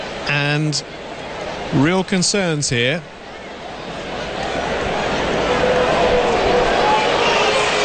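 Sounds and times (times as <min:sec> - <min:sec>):
speech: 0:00.3 - 0:01.1, 0:01.7 - 0:03.2
large hockey crowd oohing and aahing: 0:03.2 - 0:07.8.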